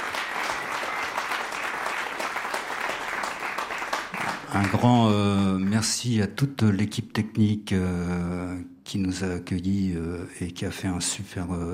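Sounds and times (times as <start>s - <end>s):
loud applause: 0.0s - 5.0s
speech: 4.5s - 11.7s.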